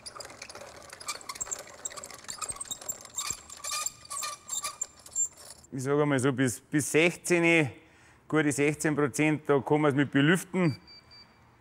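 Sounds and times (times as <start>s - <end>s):
small mill grinding damp wheat for moisture testing: 0.0s - 5.7s
speech: 5.7s - 10.8s.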